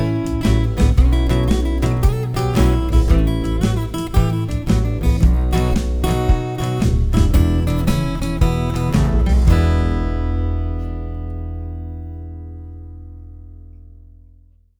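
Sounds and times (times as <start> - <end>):
12 bar swing music: 0.0 - 11.5.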